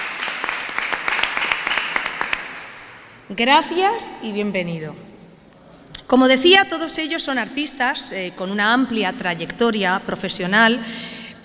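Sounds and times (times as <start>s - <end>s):
audience applause: 0.0s - 2.8s
speech: 3.3s - 5.1s, 6.1s - 11.4s.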